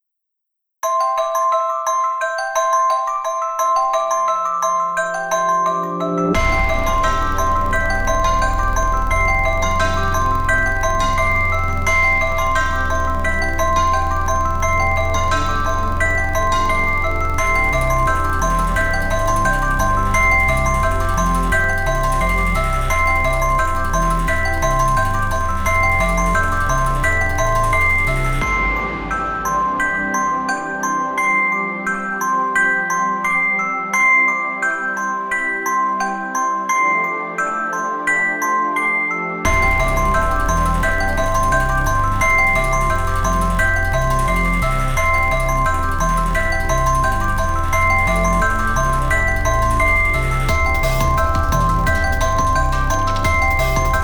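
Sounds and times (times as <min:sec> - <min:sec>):
symphonic bells: 0:00.8 - 0:54.0.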